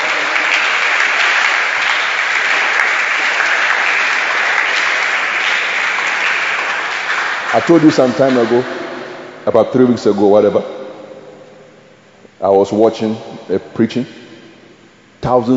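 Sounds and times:
audience applause: 0.0s - 9.4s
speech: 7.5s - 8.8s, 9.5s - 10.8s, 12.4s - 14.2s, 15.2s - 15.5s.

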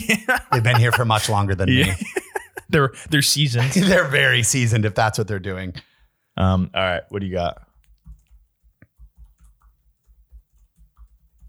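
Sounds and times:
laughter: 0.0s - 2.9s, 3.6s - 4.5s
speech: 0.1s - 7.6s
soft keyboard typing as a stand-up joke is jotted down: 7.7s - 11.4s.

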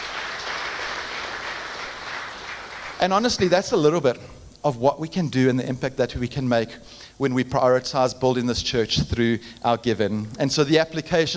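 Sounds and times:
crowd applauding: 0.0s - 3.1s
speech: 3.0s - 11.3s.

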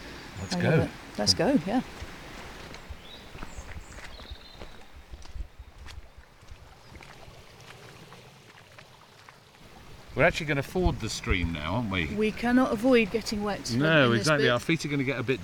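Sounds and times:
speech: 0.5s - 2.1s, 10.2s - 15.4s
footsteps on the walk down to Porthtown Beach in North Cornwall: 2.0s - 7.8s.

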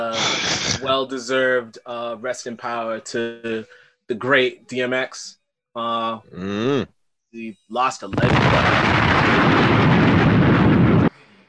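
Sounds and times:
speech: 0.8s - 9.9s
DJ-style bomb-drop sound effect: 8.1s - 11.1s.

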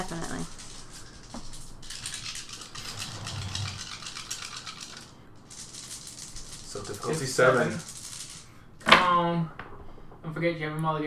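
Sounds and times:
dice rattling and clattering: 0.0s - 9.0s
speech: 6.9s - 7.9s, 10.3s - 11.0s.

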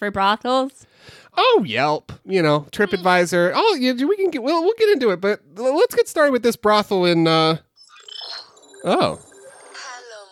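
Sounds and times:
speech: 0.0s - 7.6s, 8.8s - 9.3s
mobile phone ringtone: 7.8s - 10.3s.

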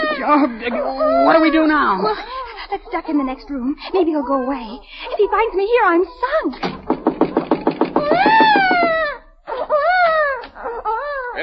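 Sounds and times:
baby crying: 0.0s - 6.5s, 8.0s - 11.4s
speech: 0.1s - 6.9s.

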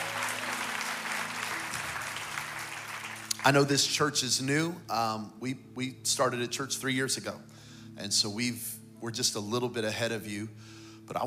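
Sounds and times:
audience clapping hands: 0.0s - 3.9s
speech: 3.4s - 11.2s.

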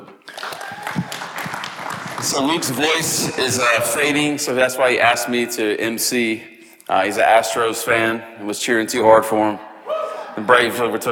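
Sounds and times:
audience applause: 0.2s - 4.4s
laughter: 0.3s - 5.2s, 9.8s - 11.0s
speech: 2.2s - 9.7s, 10.4s - 11.0s.

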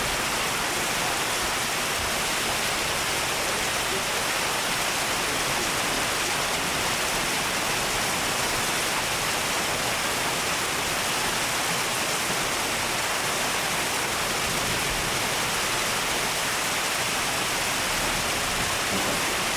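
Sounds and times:
heavy rain pouring: 0.0s - 19.5s.

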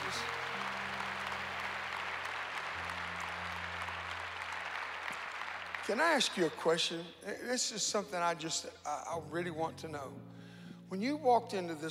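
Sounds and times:
audience clapping: 0.0s - 7.1s
speech: 5.9s - 11.8s.

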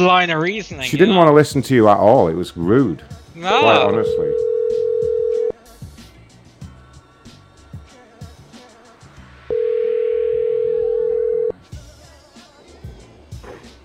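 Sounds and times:
speech: 0.0s - 4.8s
telephone dial tone after the call disconnected: 4.2s - 5.5s, 9.5s - 11.6s.

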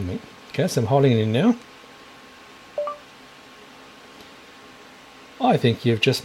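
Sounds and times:
speech: 0.0s - 1.7s, 5.4s - 6.2s
voice assistant beep: 2.8s - 3.0s.

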